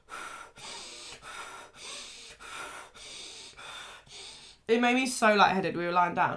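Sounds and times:
rapid two-in two-out breathing while lying down: 0.0s - 4.7s
speech: 4.7s - 6.3s.

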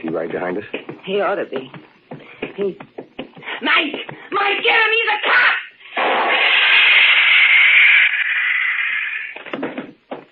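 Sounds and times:
speech: 0.1s - 1.9s, 2.6s - 2.9s, 3.6s - 5.6s
stun gun blast electric buzz: 5.9s - 9.4s.

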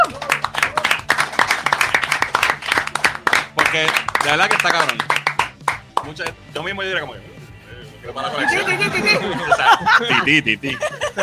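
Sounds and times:
applause: 0.0s - 6.4s
speech: 3.7s - 5.2s, 6.0s - 7.3s, 8.0s - 11.2s
laughter: 8.2s - 11.2s.

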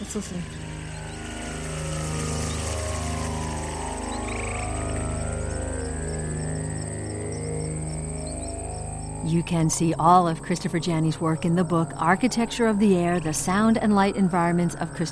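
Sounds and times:
birds in Massachusetts: 0.0s - 9.3s
frogs in Massachusetts: 0.0s - 15.0s
speech: 0.1s - 0.7s, 9.2s - 15.0s.

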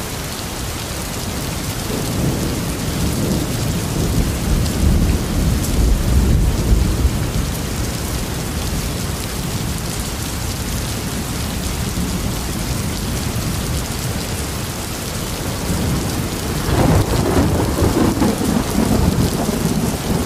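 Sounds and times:
dense storm rain hissing: 0.0s - 20.2s
low rolling thunder: 1.9s - 8.4s, 15.4s - 20.2s.

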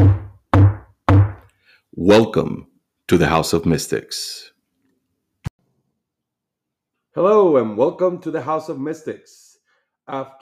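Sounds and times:
knock on a door: 0.0s - 1.4s
speech: 2.0s - 4.5s, 7.2s - 9.4s, 10.1s - 10.3s.

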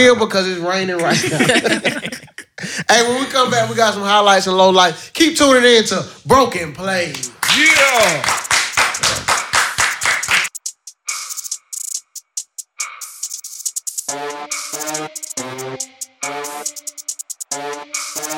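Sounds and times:
speech: 0.0s - 8.4s
laughter: 1.0s - 4.3s
clapping: 7.1s - 10.5s.

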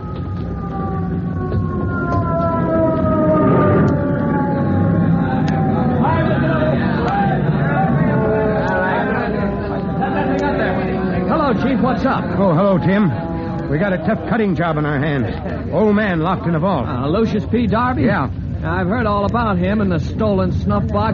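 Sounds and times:
crowd chatter and commotion: 0.0s - 21.1s
rescue company fire truck siren wailing: 0.0s - 21.1s
speech: 12.1s - 21.1s.

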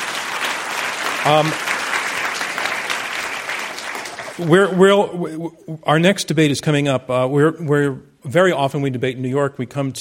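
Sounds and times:
audience applause: 0.0s - 4.7s
speech: 1.2s - 1.7s, 4.4s - 9.9s.

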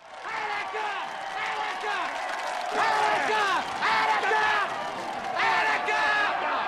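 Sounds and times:
large crowd of onlookers cheering and shouting: 0.0s - 6.6s.

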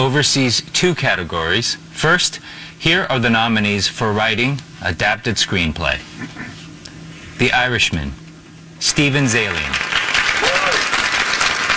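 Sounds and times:
speech: 0.0s - 6.6s, 7.4s - 8.2s, 8.8s - 9.9s
applause: 9.0s - 11.7s.

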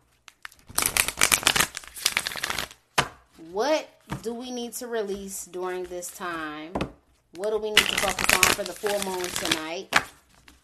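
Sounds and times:
tarot cards pulled from the deck: 0.0s - 3.4s, 5.1s - 10.6s
speech: 3.5s - 10.1s.

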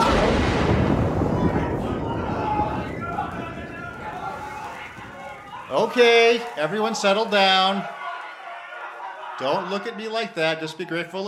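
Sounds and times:
loud lightning strike and thunderclap: 0.0s - 6.6s
speech: 5.8s - 8.0s, 9.4s - 11.2s.

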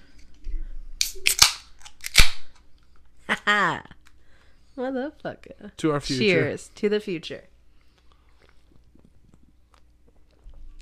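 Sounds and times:
cans cracking open: 1.0s - 2.4s
speech: 4.8s - 7.5s.

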